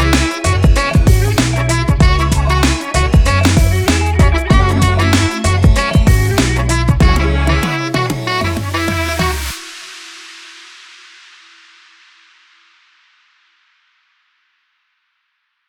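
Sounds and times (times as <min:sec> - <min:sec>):
hip hop promo vlog opener music: 0:00.0 - 0:09.6.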